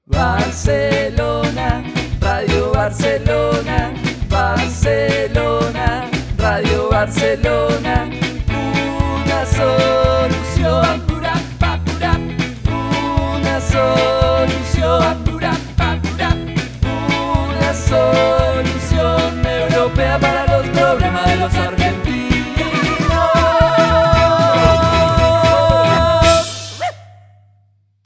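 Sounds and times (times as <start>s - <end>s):
swing music on Radio Barcelona: 0.2s - 26.5s.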